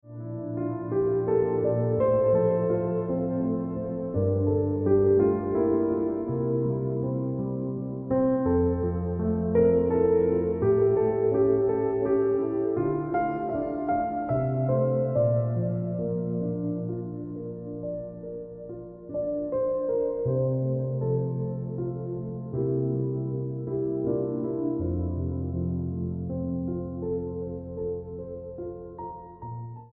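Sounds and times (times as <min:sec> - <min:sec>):
piano ringtone music: 0:00.1 - 0:29.9.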